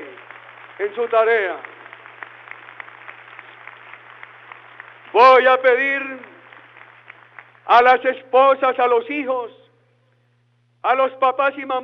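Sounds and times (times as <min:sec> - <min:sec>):
crowd applause: 0:00.0 - 0:08.0
speech: 0:00.8 - 0:01.7, 0:05.2 - 0:06.3, 0:07.7 - 0:09.6, 0:10.8 - 0:11.8.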